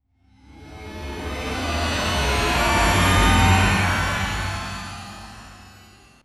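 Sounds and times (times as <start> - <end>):
otherworldly sound of a parallel dimension: 0.2 - 6.2.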